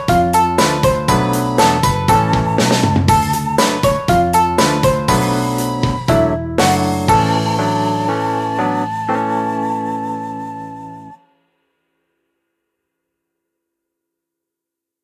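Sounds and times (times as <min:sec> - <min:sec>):
rock music: 0:00.0 - 0:09.6.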